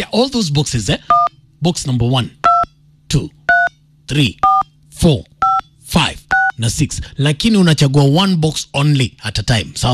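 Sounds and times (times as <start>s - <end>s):
speech: 0.0s - 1.0s, 1.6s - 2.4s, 4.1s - 5.3s, 5.9s - 9.9s
phone keypad tones dialing an M-Pesa code: 3.5s - 3.8s, 4.4s - 4.7s.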